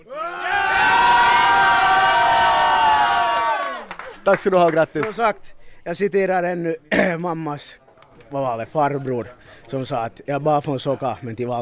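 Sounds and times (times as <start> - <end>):
supporters from Soka cheering a World Championship bronze medal: 0.0 - 3.9
speech: 4.2 - 11.6.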